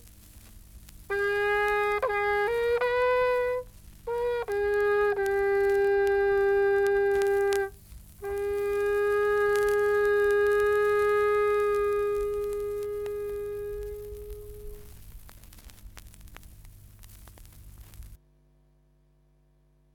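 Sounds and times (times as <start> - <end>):
ox horn: 1.1 - 15.0.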